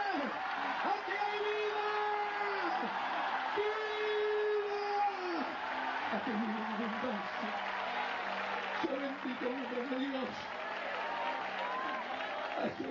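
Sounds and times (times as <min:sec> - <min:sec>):
man's voice rising and falling loudly: 0:00.0 - 0:05.6
large crowd clapping: 0:00.0 - 0:12.8
speech: 0:06.2 - 0:07.8, 0:08.9 - 0:10.6, 0:12.6 - 0:12.8.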